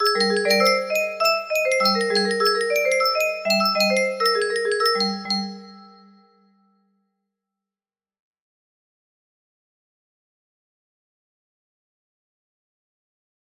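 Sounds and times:
music box melody: 0:00.0 - 0:06.3.

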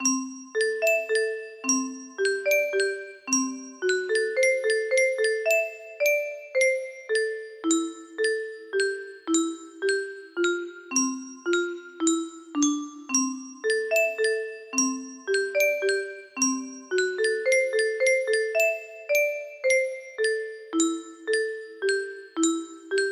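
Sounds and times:
music box: 0:00.0 - 0:23.1.

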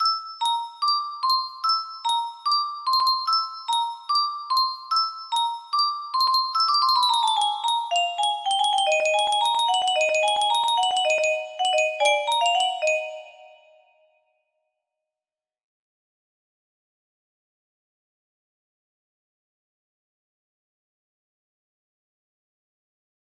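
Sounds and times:
ting tang music box melody: 0:00.0 - 0:14.1.

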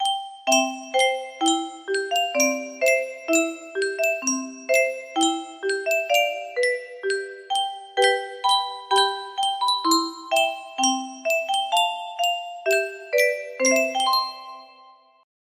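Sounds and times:
music box melody: 0:00.0 - 0:15.2.

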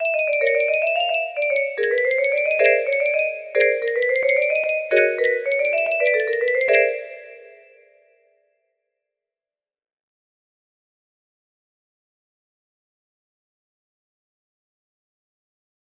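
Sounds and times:
melody: 0:00.0 - 0:08.0.

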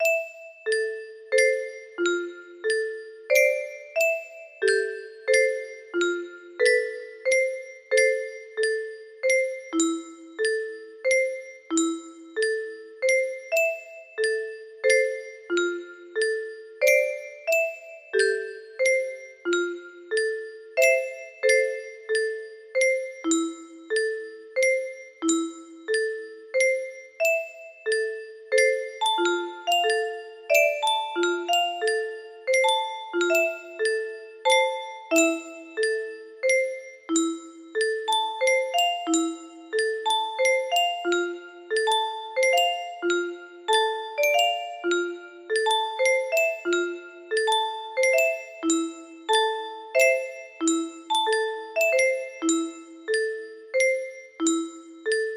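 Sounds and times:
music box: 0:00.0 - 0:55.3.

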